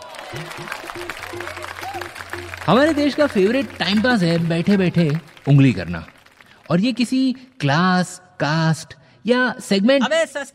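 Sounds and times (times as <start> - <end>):
audience applause: 0.0 - 7.4
speech: 0.3 - 10.5
tonal sounds: 0.4 - 6.8.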